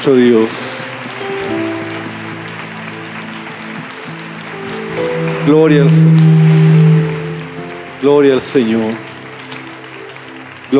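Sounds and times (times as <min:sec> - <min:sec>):
speech: 0:00.0 - 0:00.8, 0:05.5 - 0:06.8, 0:08.0 - 0:09.1
audience applauding: 0:00.0 - 0:10.7.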